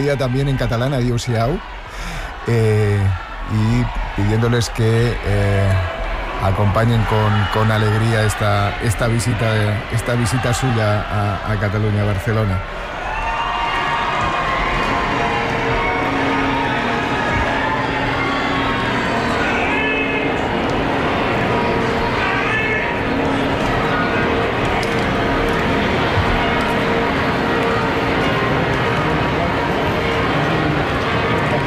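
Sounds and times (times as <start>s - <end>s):
speech: 0.0s - 12.9s
crowd murmuring with cheering: 0.0s - 31.6s
cathedral church bells pealing: 15.3s - 31.6s.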